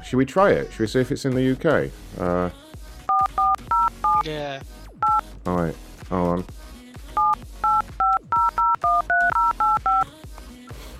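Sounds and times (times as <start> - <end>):
speech: 0.1 - 2.7, 4.2 - 4.8, 5.4 - 6.6
telephone keypad DTMF beeps dialing a UK number: 3.1 - 4.2, 7.2 - 10.1.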